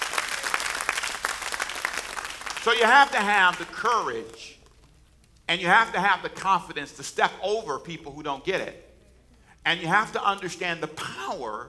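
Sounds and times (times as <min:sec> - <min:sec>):
audience clapping hands: 0:00.0 - 0:04.8
speech: 0:02.6 - 0:04.6, 0:05.5 - 0:08.9, 0:09.6 - 0:11.6.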